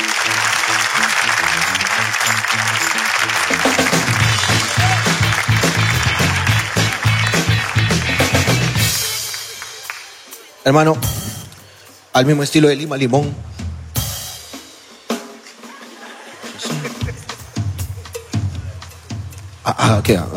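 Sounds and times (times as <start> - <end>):
audience applause: 0.0 - 10.6
speech: 10.7 - 11.2, 12.2 - 13.5, 19.8 - 20.3
laughter: 15.4 - 18.8.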